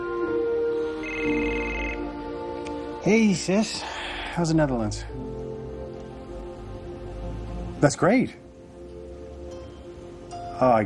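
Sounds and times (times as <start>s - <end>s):
mobile phone electronic ringtone: 1.0s - 2.1s
speech: 3.0s - 5.2s, 7.8s - 8.4s, 10.6s - 10.8s.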